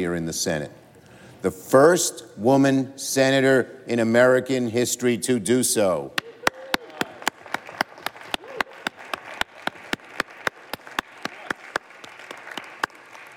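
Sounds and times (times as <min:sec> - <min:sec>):
speech: 0:00.0 - 0:00.8, 0:01.4 - 0:06.2
applause: 0:06.2 - 0:13.3.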